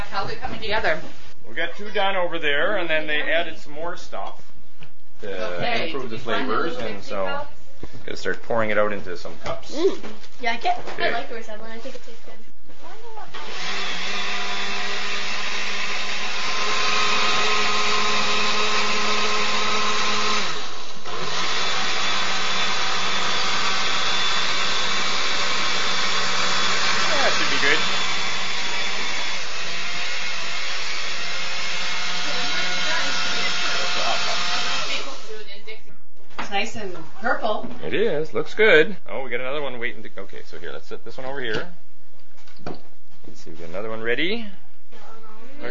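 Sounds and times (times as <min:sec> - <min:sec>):
speech: 0:00.2 - 0:04.5, 0:05.2 - 0:12.4, 0:37.2 - 0:41.8, 0:42.6 - 0:45.6
blender running: 0:13.3 - 0:35.6.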